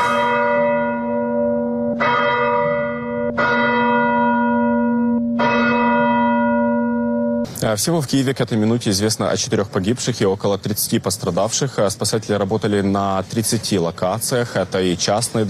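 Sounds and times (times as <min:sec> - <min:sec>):
church bells ringing: 0:00.0 - 0:07.5
speech: 0:07.7 - 0:15.4.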